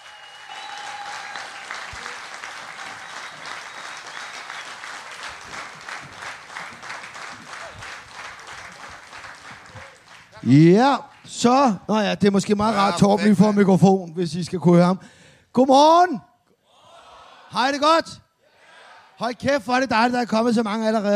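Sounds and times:
audience applauding two performers on stage: 0.0 - 11.3
speech: 10.4 - 16.3, 17.5 - 18.2, 19.2 - 21.1.

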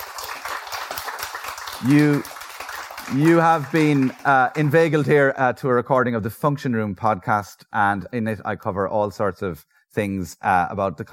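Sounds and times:
audience applause: 0.0 - 5.1
speech: 1.8 - 2.3, 3.1 - 11.1.

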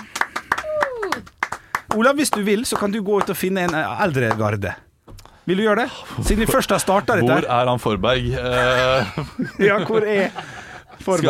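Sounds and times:
sharp hand claps from a small group: 0.0 - 4.5
brief falling vocal whoop: 0.6 - 1.3
speech: 1.9 - 4.9, 5.5 - 11.2
laughter: 8.3 - 11.2.

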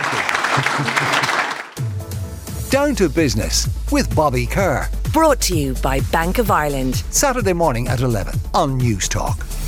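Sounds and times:
crowd applauding: 0.0 - 2.0
speech: 0.6 - 1.2, 2.7 - 9.5.

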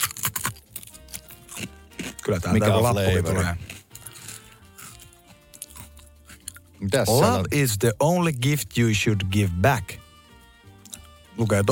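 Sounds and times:
crunching open a fortune cookie: 0.0 - 7.4
speech: 2.3 - 3.7, 6.8 - 10.0, 11.4 - 11.7.

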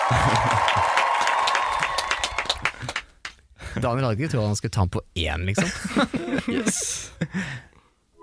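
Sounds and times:
laughter: 0.0 - 1.0, 5.6 - 7.5
applause: 0.0 - 3.4
speech: 0.1 - 1.0, 3.8 - 7.7.

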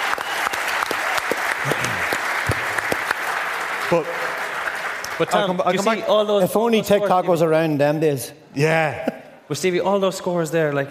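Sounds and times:
applause: 0.0 - 6.0
speech: 3.9 - 4.3, 5.2 - 10.8.

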